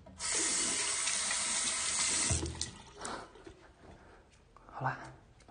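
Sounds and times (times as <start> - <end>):
tap water running: 0.0 - 3.6
speech: 4.8 - 5.1.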